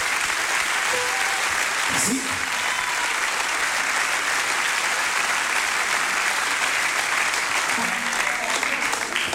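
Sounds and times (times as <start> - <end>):
audience applause: 0.0 - 9.3.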